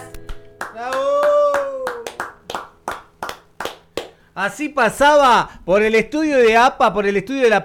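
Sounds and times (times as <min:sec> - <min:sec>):
studio applause: 0:00.0 - 0:04.2
speech: 0:04.4 - 0:07.6.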